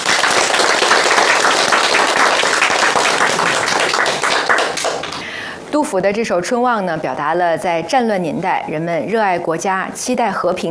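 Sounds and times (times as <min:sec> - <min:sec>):
students clapping: 0:00.0 - 0:05.3
speech: 0:05.7 - 0:10.7.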